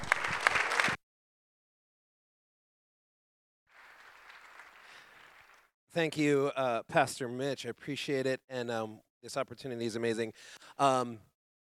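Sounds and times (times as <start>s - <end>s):
congregation applauding to welcome a pastor and missionary: 0.0s - 1.0s, 3.7s - 5.7s
speech: 6.0s - 11.3s.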